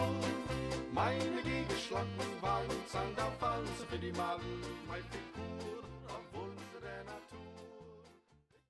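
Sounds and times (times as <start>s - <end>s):
music medley: 0.0s - 6.8s.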